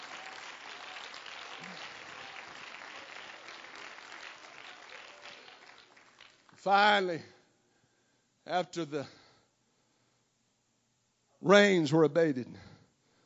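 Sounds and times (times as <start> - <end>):
audience applause: 0.0 - 6.7
speech: 6.6 - 7.4, 8.5 - 9.2, 11.4 - 12.7.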